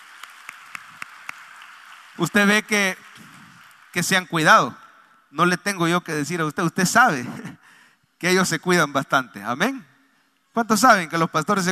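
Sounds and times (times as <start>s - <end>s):
audience clapping: 0.0s - 4.7s
speech: 2.2s - 3.0s, 3.9s - 7.5s, 8.2s - 9.9s, 10.6s - 11.7s.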